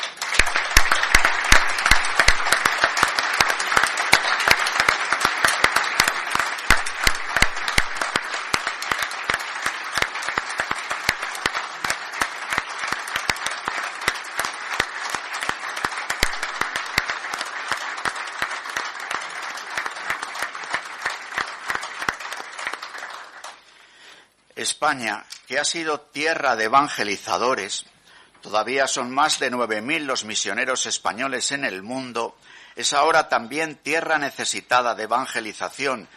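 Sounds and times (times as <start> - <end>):
audience applause: 0.0 - 23.7
speech: 24.8 - 36.1.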